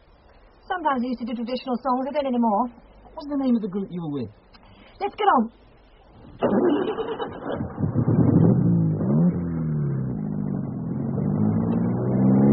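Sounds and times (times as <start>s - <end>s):
speech: 0.8s - 4.4s, 5.0s - 5.6s
line of cars driving past: 7.4s - 12.5s.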